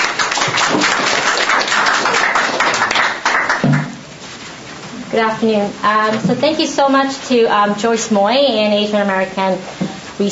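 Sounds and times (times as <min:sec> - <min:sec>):
audience applause: 0:00.0 - 0:04.0
speech: 0:05.2 - 0:10.3.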